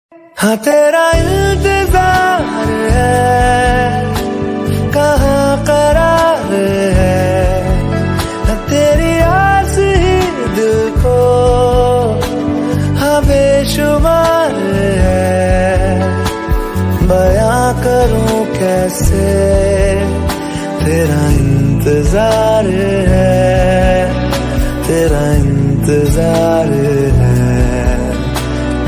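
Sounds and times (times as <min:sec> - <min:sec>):
love song ringtone: 0:00.1 - 0:28.8.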